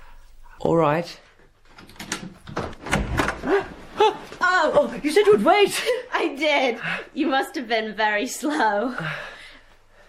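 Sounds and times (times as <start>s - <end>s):
speech: 0.6s - 1.2s, 3.4s - 9.3s
door being unlocked and opened: 1.7s - 3.4s.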